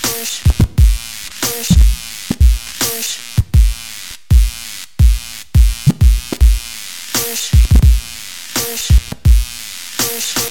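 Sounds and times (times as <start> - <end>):
record scratching: 0.2 - 3.8, 5.7 - 9.5.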